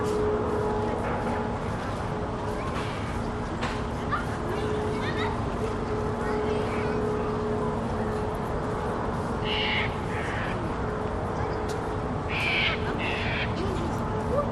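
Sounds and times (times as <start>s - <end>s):
distant city noise at midday outside a botanic gardens cafe in Sydney: 0.0s - 14.5s
few people at a botanic gardens cafe in Sydney: 0.0s - 14.5s
birds in a park botanic gardens in Sydney: 9.4s - 10.6s, 11.3s - 13.9s.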